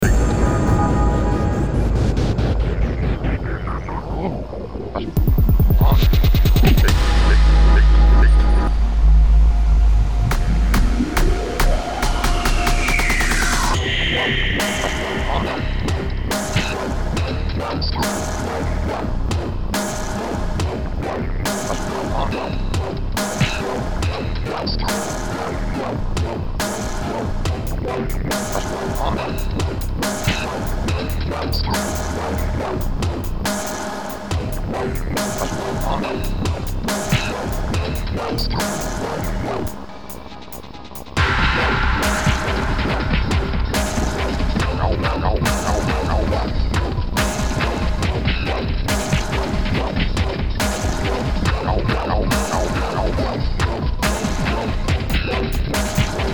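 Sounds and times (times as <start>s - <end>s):
dubstep music: 0.0s - 56.3s.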